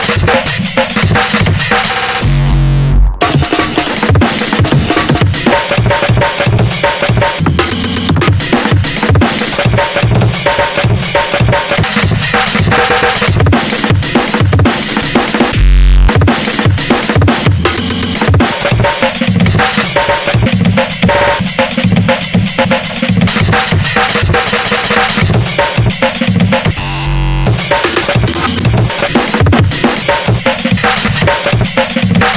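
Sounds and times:
drums in fan-made music: 0.0s - 32.3s.

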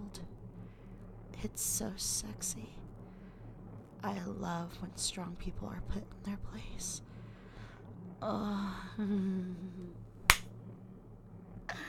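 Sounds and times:
speech: 1.4s - 2.8s, 4.0s - 7.1s, 8.2s - 10.1s
hand slap on skin: 10.3s - 10.5s.

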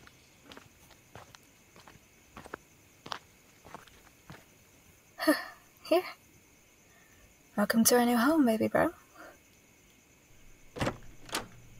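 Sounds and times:
footsteps walking: 0.0s - 4.5s
speech: 5.2s - 6.2s, 7.6s - 9.0s.

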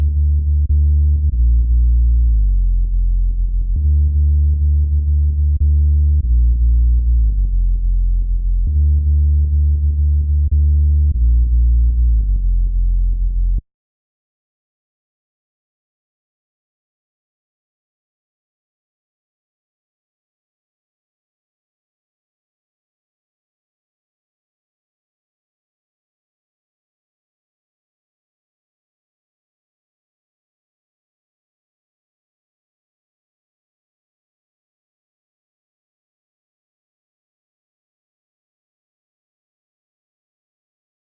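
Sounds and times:
bass instrumental: 0.0s - 13.6s.

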